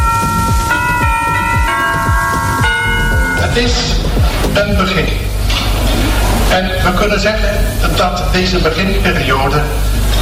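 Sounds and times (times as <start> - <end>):
bell from archive of first Dutch television broadcast: 0.0 - 4.6
low swooping rumbles: 0.0 - 7.8
speech: 3.6 - 5.3, 6.5 - 10.0.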